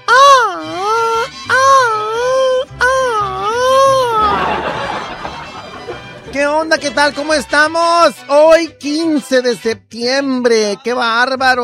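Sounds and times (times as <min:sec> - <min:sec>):
traditional Mexican grito shout: 0:00.0 - 0:04.8
laughter: 0:03.8 - 0:07.0
speech: 0:06.6 - 0:11.6.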